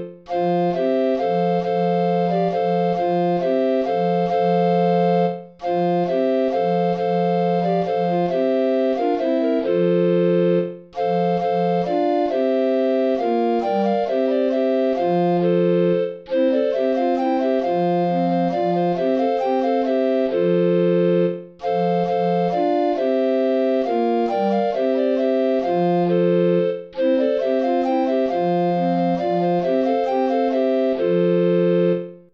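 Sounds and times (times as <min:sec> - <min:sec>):
play-along accompaniment music without soprano recorder: 0:00.0 - 0:32.3.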